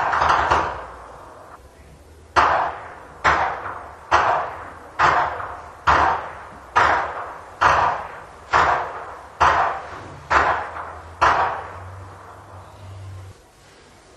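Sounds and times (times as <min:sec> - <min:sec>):
whip cracking in Flachgau: 0:00.0 - 0:01.0, 0:02.4 - 0:11.9.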